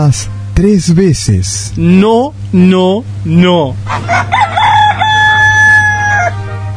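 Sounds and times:
speech: 0:00.0 - 0:04.4
rooster crowing: 0:03.9 - 0:06.6.

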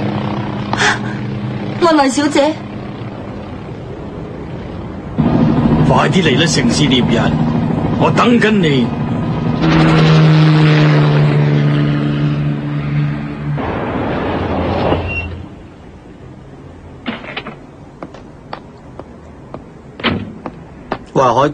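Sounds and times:
helicopter roaring: 0:00.0 - 0:21.1
speech: 0:01.8 - 0:02.6, 0:05.9 - 0:09.1, 0:21.2 - 0:21.5
sharp knocks and clicks: 0:17.0 - 0:21.1.

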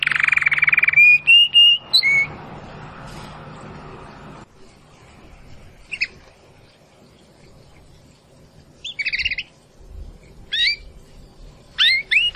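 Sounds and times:
domestic canary trilling and whistling: 0:00.0 - 0:02.4, 0:05.9 - 0:06.2, 0:08.8 - 0:09.6, 0:10.5 - 0:11.0, 0:11.7 - 0:12.3.

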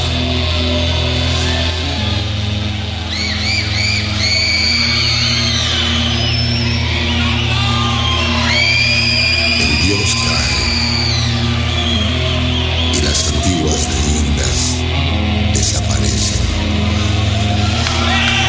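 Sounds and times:
eerie scream from far away: 0:00.2 - 0:15.2, 0:16.4 - 0:18.4.

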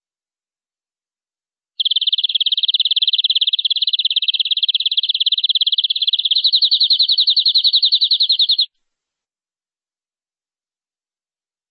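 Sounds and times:
canary trilling: 0:01.8 - 0:08.7.

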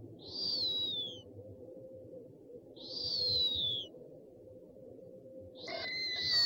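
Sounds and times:
owl calling with low pulses and high sliding whistles: 0:00.2 - 0:01.3, 0:02.8 - 0:03.9, 0:05.6 - 0:06.4.

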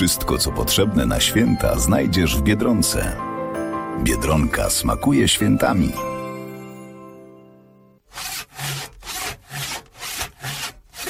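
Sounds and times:
speech: 0:00.0 - 0:03.3, 0:04.0 - 0:06.1
saw cutting the lower branches off a Christmas tree: 0:08.0 - 0:11.0.

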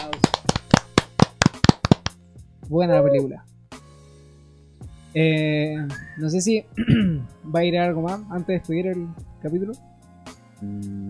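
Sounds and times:
hands clapping: 0:00.0 - 0:02.2
speech: 0:02.7 - 0:03.5, 0:05.2 - 0:09.9, 0:10.6 - 0:11.0.

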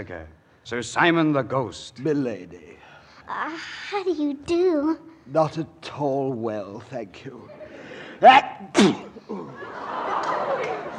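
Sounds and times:
speech: 0:00.0 - 0:07.6, 0:08.2 - 0:10.0
person sneezing: 0:08.2 - 0:09.5
laughter: 0:09.2 - 0:10.9.

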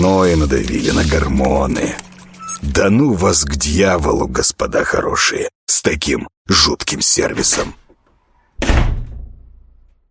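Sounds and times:
speech: 0:00.2 - 0:02.0, 0:02.6 - 0:07.8, 0:08.6 - 0:09.0
door slamming shut: 0:08.6 - 0:10.0.

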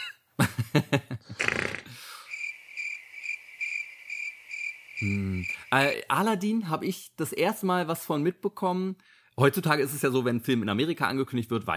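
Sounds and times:
speech: 0:00.9 - 0:01.1, 0:05.0 - 0:11.7
crickets chirping: 0:02.1 - 0:05.8.

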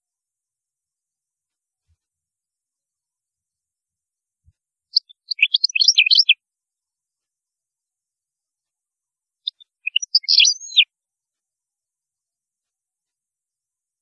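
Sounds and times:
European goldfinch singing: 0:04.9 - 0:06.4, 0:09.4 - 0:10.8.

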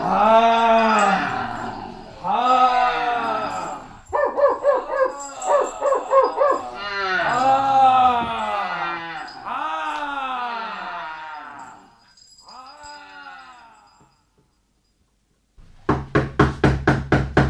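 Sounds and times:
voices: 0:00.0 - 0:14.3
knocking on a door: 0:15.6 - 0:17.4.

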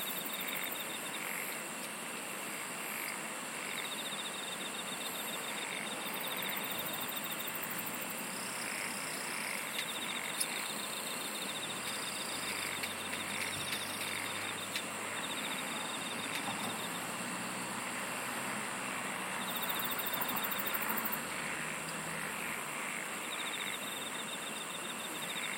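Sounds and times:
insect chorus trilling: 0:00.0 - 0:25.5.

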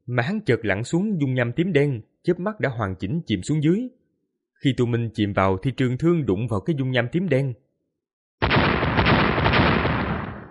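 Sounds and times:
speech: 0:00.1 - 0:04.0, 0:04.6 - 0:07.6
explosions: 0:08.4 - 0:10.4.

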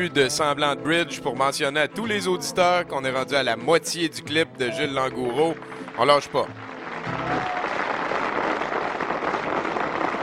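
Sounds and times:
speech: 0:00.0 - 0:07.5
audience applause: 0:05.0 - 0:10.2.

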